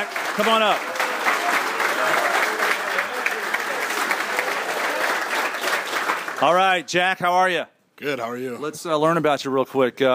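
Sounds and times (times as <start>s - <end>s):
speech: 0.0s - 1.0s, 6.4s - 10.1s
audience applause: 0.0s - 6.8s.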